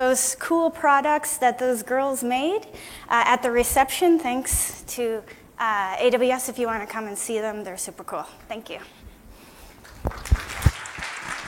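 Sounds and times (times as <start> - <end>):
speech: 0.1 - 9.0
audience applause: 9.8 - 11.4.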